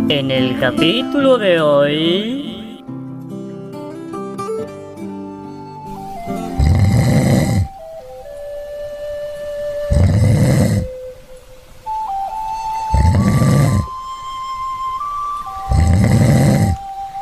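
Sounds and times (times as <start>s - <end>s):
speech: 0.1s - 2.5s
thin wavering whistle-like tone: 5.5s - 15.8s, 16.8s - 17.2s
person snoring: 6.4s - 7.8s, 9.9s - 10.9s, 12.9s - 14.0s, 15.7s - 16.8s.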